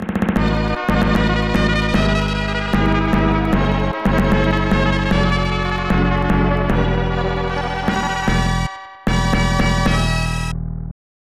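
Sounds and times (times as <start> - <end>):
round start sound: 0.0 - 10.5.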